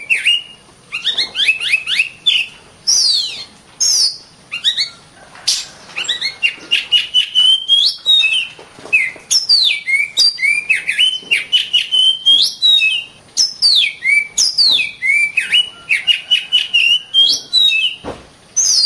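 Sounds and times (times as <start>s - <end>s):
Oriental magpie-robin song: 0.0s - 18.0s, 18.6s - 18.8s.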